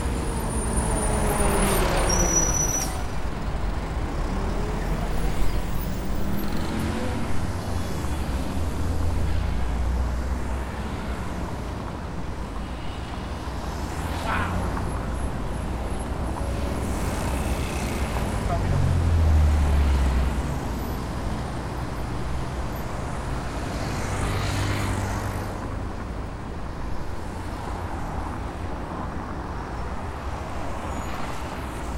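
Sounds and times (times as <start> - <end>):
rush hour cars in Buenos Aires: 0.0 - 26.2
rush hour bus in Buenos Aires: 0.0 - 31.9.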